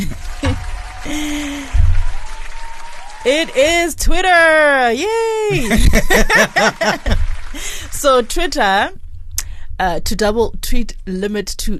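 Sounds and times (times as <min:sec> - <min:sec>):
laughter: 0:00.0 - 0:01.9, 0:05.4 - 0:08.2
applause: 0:00.0 - 0:04.2, 0:05.5 - 0:08.6
speech: 0:03.2 - 0:09.0, 0:09.8 - 0:11.7.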